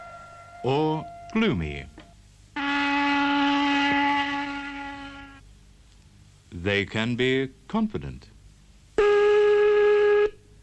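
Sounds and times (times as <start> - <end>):
factory whistle blowing: 0.0 - 5.4, 9.0 - 10.5
speech: 0.6 - 1.9, 6.6 - 8.3.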